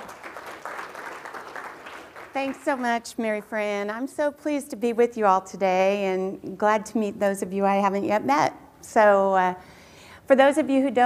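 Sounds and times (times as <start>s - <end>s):
conference audience applause welcoming a speaker: 0.0s - 2.9s
speech: 2.4s - 9.7s, 10.3s - 11.0s.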